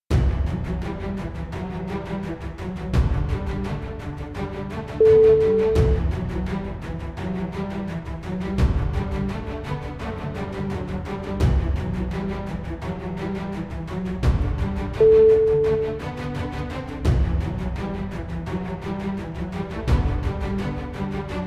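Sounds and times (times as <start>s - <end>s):
victory cinematic trailer music: 0.1s - 21.4s.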